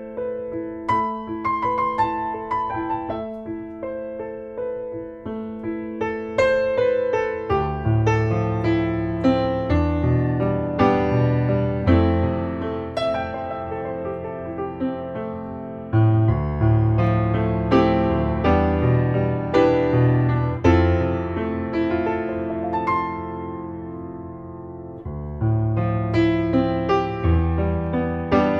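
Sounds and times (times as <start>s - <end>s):
piano solo: 0.0s - 28.5s.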